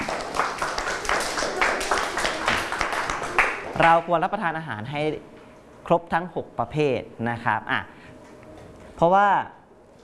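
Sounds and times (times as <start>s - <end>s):
classmates clapping: 0.0s - 4.1s
speech: 3.8s - 8.0s, 9.0s - 10.0s.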